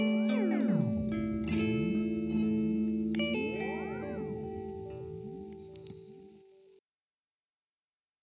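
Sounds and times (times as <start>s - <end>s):
Teisco delay modulation effect: 0.4s - 6.4s.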